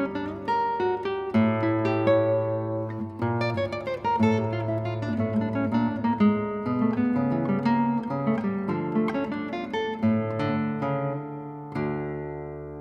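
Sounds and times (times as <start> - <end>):
guitar piece: 0.0 - 12.7.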